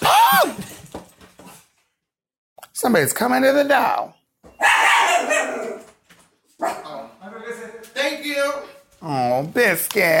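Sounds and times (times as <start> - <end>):
speech: 2.8 - 5.7, 6.6 - 10.1
dog barking: 4.6 - 5.9, 6.6 - 7.1.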